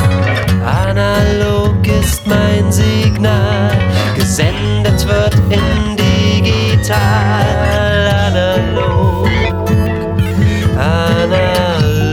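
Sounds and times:
modular analog synthesizer music: 0.0s - 12.1s.

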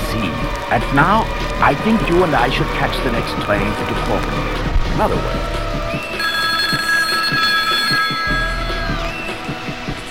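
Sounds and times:
speech: 0.2s - 5.6s
telephone ringing: 6.0s - 9.8s.

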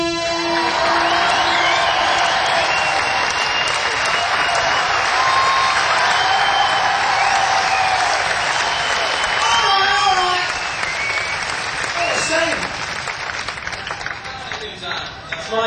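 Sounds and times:
crowd applause and cheering: 0.0s - 15.5s.

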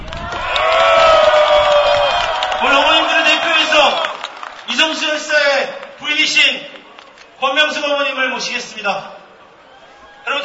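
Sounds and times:
audience clapping at an event honouring bereaved families: 0.0s - 7.4s
crowd cheering: 0.0s - 7.4s, 9.4s - 10.4s
speech: 7.7s - 9.1s.

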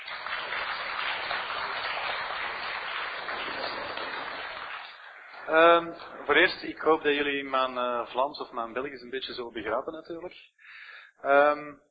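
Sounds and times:
audience applause: 0.0s - 7.4s
speech: 5.5s - 10.6s, 11.2s - 11.8s.

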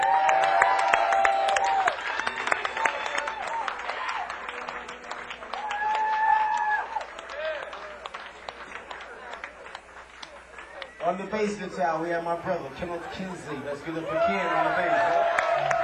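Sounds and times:
audience applause: 0.0s - 11.6s, 14.0s - 15.8s
speech: 11.4s - 15.4s.

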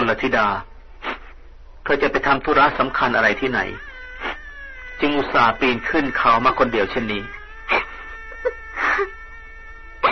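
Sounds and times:
speech: 0.1s - 0.7s, 1.8s - 3.9s, 5.0s - 7.8s
woman crying: 7.6s - 9.4s.

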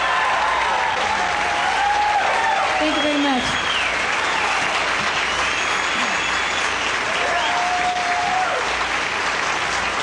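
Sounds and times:
audience applause welcoming a band onto the stage: 0.0s - 10.0s.

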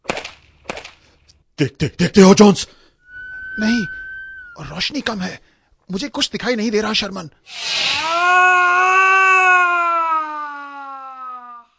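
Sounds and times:
speech: 1.6s - 2.8s, 3.6s - 4.0s, 4.6s - 8.4s
scream: 3.1s - 4.6s, 7.5s - 11.7s.

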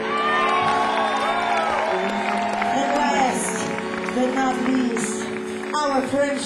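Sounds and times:
crowd cheering and whooping: 0.0s - 4.6s
crowd clapping: 0.0s - 6.4s.

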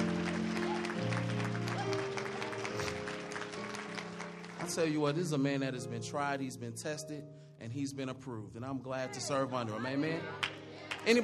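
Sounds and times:
audience applauding: 0.0s - 5.2s, 10.4s - 11.2s
organ or keyboard chords: 0.0s - 8.7s
speech: 4.7s - 11.2s.

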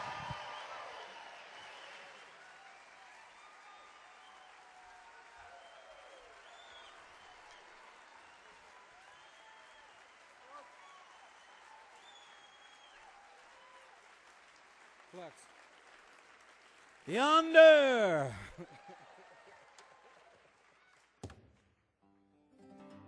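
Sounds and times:
crowd applause at a live concert: 0.0s - 21.1s
speech: 15.2s - 15.6s, 17.1s - 18.5s
crowd noise at a live concert: 17.1s - 18.6s.

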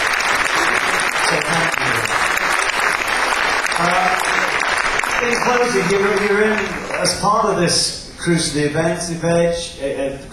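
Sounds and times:
audience round of applause: 0.0s - 7.6s
speech: 5.4s - 10.3s.

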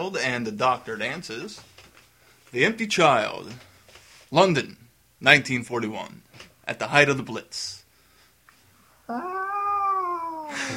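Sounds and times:
speech: 0.0s - 1.7s, 2.5s - 3.7s, 4.3s - 7.8s, 9.1s - 9.5s
voice imitating an air raid siren: 9.1s - 10.6s.

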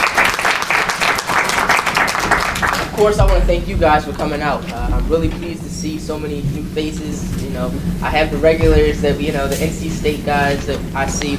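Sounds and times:
audience applause: 0.0s - 4.1s
speech: 3.0s - 11.3s.

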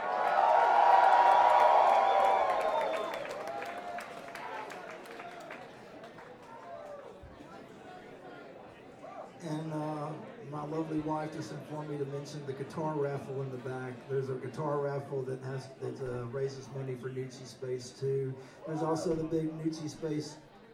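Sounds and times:
crowd cheering and whooping: 0.0s - 5.7s
clapping: 0.0s - 7.2s
murmur of chatter: 3.7s - 20.7s
speech: 11.0s - 20.5s.

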